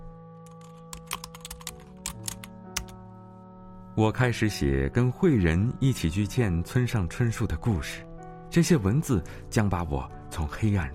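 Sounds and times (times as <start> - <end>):
typing on a computer keyboard: 0.5 - 3.0
speech: 4.0 - 10.9.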